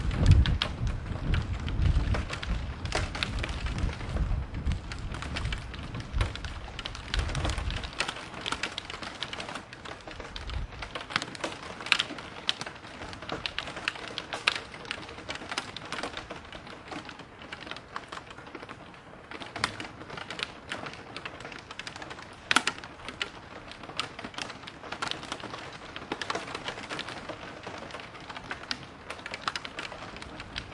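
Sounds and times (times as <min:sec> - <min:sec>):
thunder: 0:00.0 - 0:08.0
rain in a city: 0:00.0 - 0:30.7.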